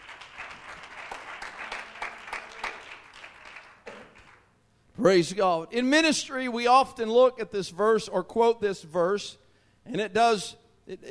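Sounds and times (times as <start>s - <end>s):
audience hand clap of praise: 0.0s - 4.5s
speech: 5.0s - 11.0s.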